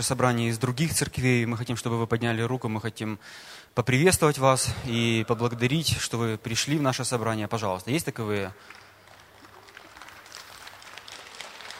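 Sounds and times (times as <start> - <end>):
speech: 0.0 - 8.8
scattered clapping in church audience: 8.6 - 11.7.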